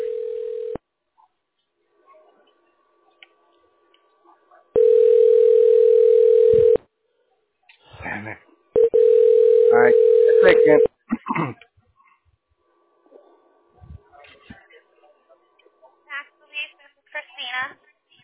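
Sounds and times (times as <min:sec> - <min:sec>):
telephone ringing on the line: 0:00.0 - 0:00.8, 0:04.8 - 0:06.8, 0:08.8 - 0:10.9.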